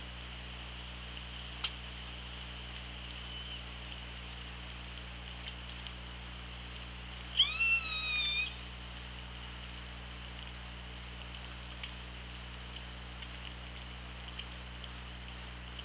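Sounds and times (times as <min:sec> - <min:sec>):
low hum: 0:00.0 - 0:15.8
killer whale pulsed call: 0:07.4 - 0:08.6.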